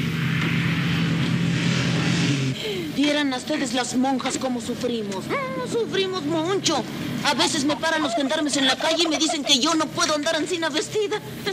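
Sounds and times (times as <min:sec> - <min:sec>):
old bus engine on a sandy road through arid land: 0:00.0 - 0:08.0
road rumble on a sandy road: 0:00.0 - 0:11.5
speech: 0:03.0 - 0:11.5.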